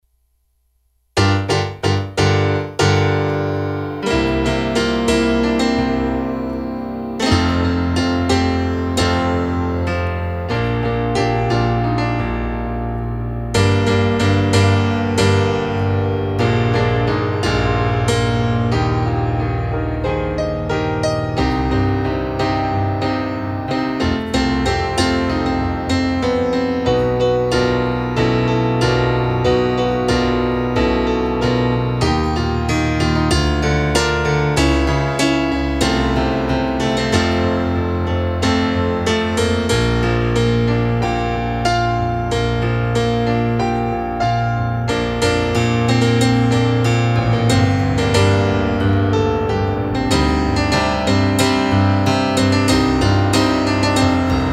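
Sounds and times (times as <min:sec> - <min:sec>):
piano: 0:01.2 - 0:54.5.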